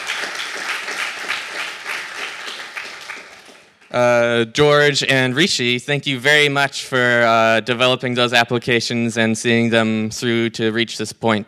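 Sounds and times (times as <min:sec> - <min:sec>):
audience applause: 0:00.0 - 0:03.8
speech: 0:03.9 - 0:11.4.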